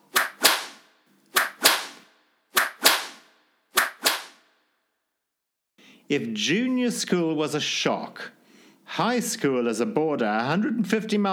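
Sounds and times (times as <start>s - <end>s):
cane strokes as corporal punishment: 0.0s - 4.4s
speech: 6.1s - 11.3s.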